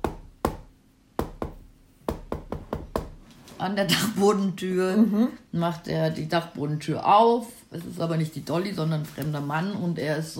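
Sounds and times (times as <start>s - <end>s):
secret knock on a door: 0.0s - 3.2s
speech: 3.6s - 10.3s.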